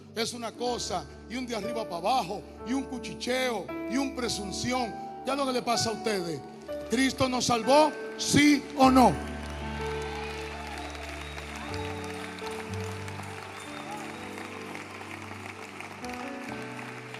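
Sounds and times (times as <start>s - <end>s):
speech: 0.2s - 9.3s
audience applause: 6.9s - 17.1s.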